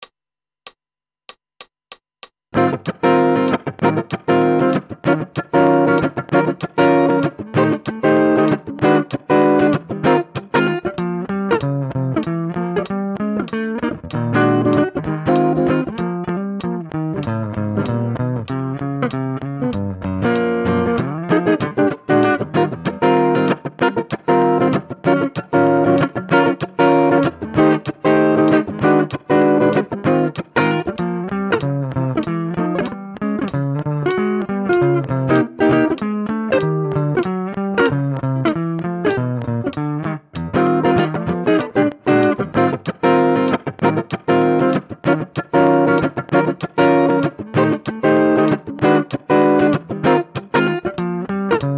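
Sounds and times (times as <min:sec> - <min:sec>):
guitar: 0:02.5 - 0:51.7.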